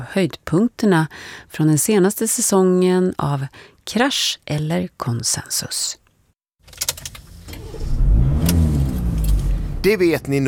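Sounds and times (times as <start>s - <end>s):
speech: 0.0s - 6.0s, 9.8s - 10.4s
car driving: 7.0s - 10.4s
car engine running: 7.2s - 10.3s.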